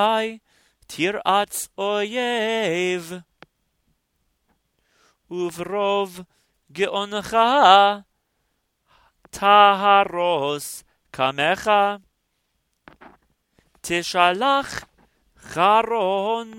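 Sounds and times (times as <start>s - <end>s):
Torah portion chanting: 0.0s - 3.3s, 5.3s - 8.1s, 9.2s - 12.1s, 13.8s - 16.5s.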